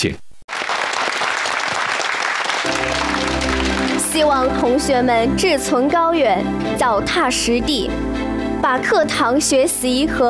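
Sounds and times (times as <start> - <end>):
speech: 0.0 - 0.2, 4.2 - 10.2
audience applause: 0.5 - 4.7.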